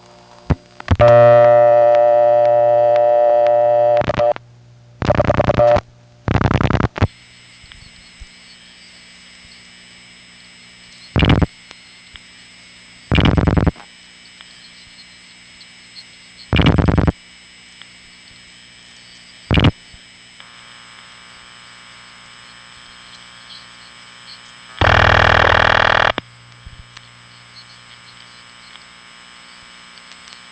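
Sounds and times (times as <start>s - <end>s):
steady hum: 0.0s - 30.5s
buzzy tone of step-by-step exchange: 0.5s - 4.4s, 5.0s - 30.5s
Bell System step office telephone ring: 24.8s - 26.2s.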